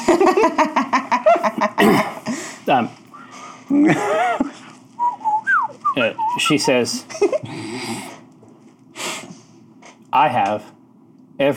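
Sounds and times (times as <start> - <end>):
laughter: 0.0 - 2.3, 3.7 - 4.7, 6.0 - 7.6
speech: 2.7 - 3.0, 6.5 - 7.5, 10.2 - 10.7, 11.4 - 11.5
person vocally imitating a warning chirp with pulses, squawks and whistled chirps: 5.1 - 6.8.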